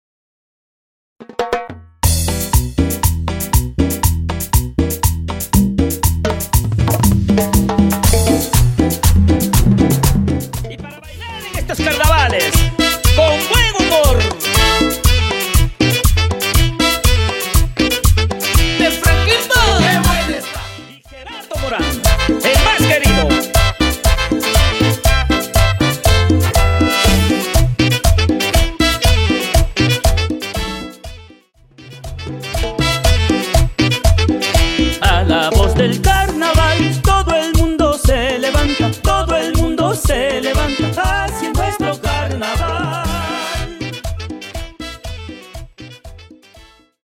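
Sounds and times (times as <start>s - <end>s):
simple music intro at 120 BPM: 2.1s - 46.9s.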